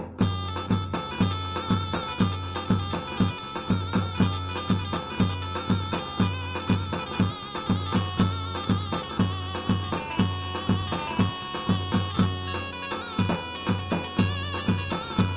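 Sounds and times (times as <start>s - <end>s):
zurna sound on Korg Pa 55 keyboard: 0.2s - 15.3s.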